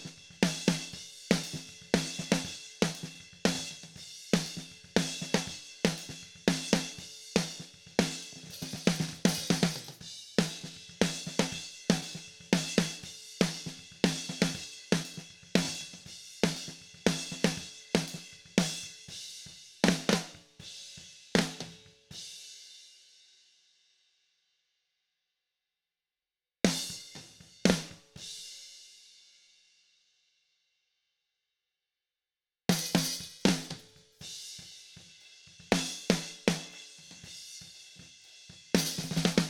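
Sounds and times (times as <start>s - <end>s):
snare drum: 0.0s - 19.0s, 19.8s - 20.5s, 32.7s - 39.4s.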